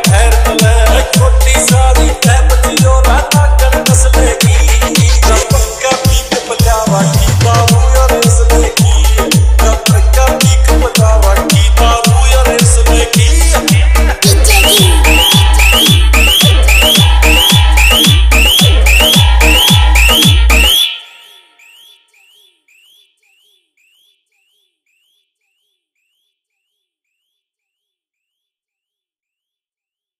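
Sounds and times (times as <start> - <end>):
DJ hard bass vibration remix: 0.0 - 21.5.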